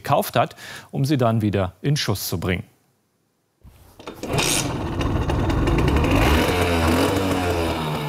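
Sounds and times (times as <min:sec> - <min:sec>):
speech: 0:00.1 - 0:02.7
small two-stroke Simson moped engine rattling: 0:04.0 - 0:08.0.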